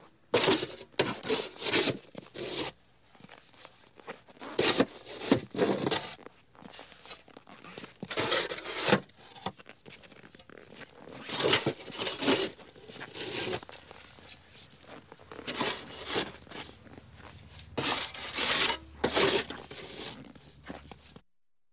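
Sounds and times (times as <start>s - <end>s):
shovel clearing snow: 0.3s - 2.8s, 4.4s - 7.2s, 8.0s - 9.5s, 11.1s - 21.2s
shoes creaking on snow: 2.3s - 21.2s.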